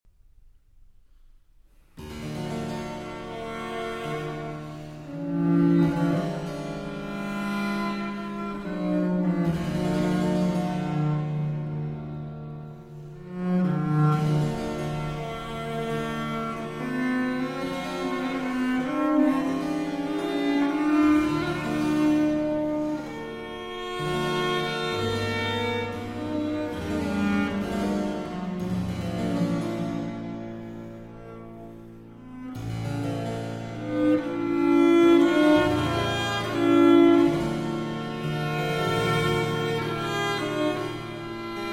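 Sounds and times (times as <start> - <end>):
violin sonata: 2.0 - 41.7.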